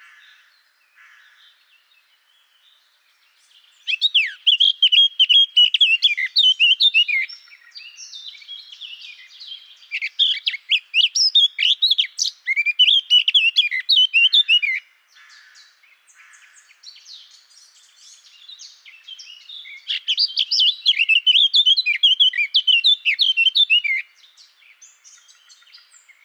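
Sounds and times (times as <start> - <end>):
Eurasian blackcap warbling in rapid phrases in Garching: 3.8 - 14.8, 16.9 - 24.1.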